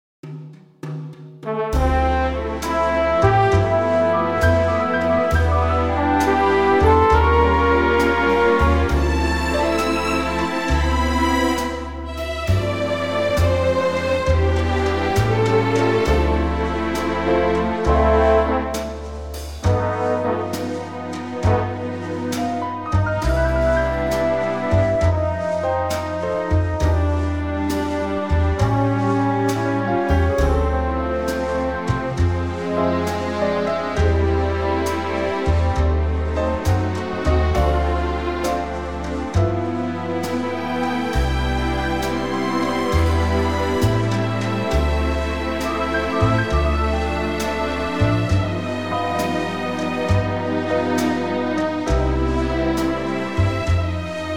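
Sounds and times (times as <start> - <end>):
orchestra chord: 1.5 - 54.3.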